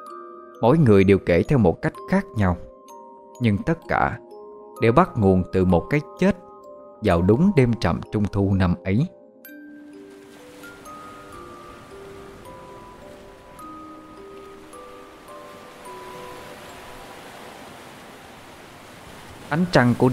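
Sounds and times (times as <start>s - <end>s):
speech: 0.6s - 2.7s, 3.4s - 4.2s, 4.8s - 6.4s, 7.0s - 9.2s, 19.5s - 20.1s
waves lapping on a sandy beach: 9.8s - 20.1s.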